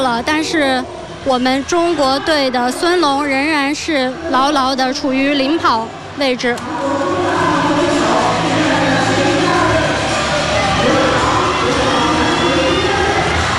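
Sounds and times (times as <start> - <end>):
speech: 0.0 - 7.0
spectators cheering at a race: 5.6 - 13.5.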